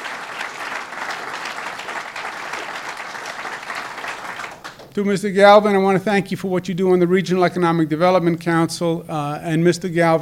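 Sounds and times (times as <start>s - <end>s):
audience applause: 0.0s - 5.0s
speech: 5.0s - 10.2s.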